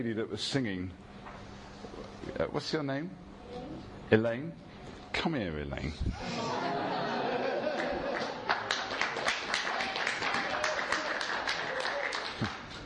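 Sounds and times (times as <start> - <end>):
speech: 0.0 - 1.1, 2.2 - 6.8
laughter: 6.2 - 8.8, 9.8 - 12.1
audience clapping: 7.6 - 12.8.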